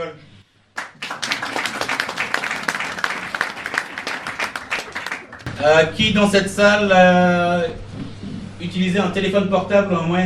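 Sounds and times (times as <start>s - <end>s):
speech: 0.0s - 0.3s, 5.6s - 7.8s, 8.6s - 10.2s
audience applause: 0.8s - 5.5s.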